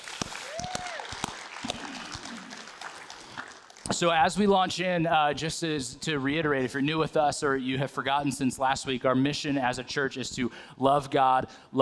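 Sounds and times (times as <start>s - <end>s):
crowd clapping: 0.0s - 4.2s
person whooping: 0.3s - 2.7s
speech: 3.9s - 11.8s.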